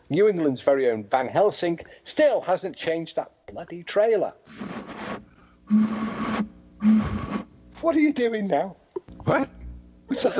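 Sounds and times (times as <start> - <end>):
speech: 0.1 - 5.0, 5.7 - 7.2, 7.8 - 10.3
person blowing across the mouth of a bottle: 4.6 - 7.6.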